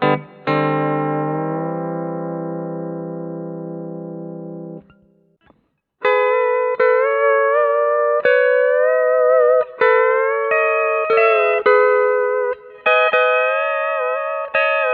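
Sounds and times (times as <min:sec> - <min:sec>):
guitar through amp modeler: 0:00.0 - 0:14.9.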